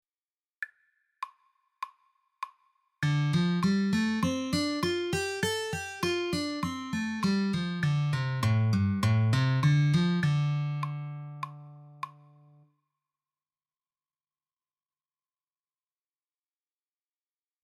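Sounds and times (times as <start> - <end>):
C minor pentatonic scale: 3.0 - 12.6.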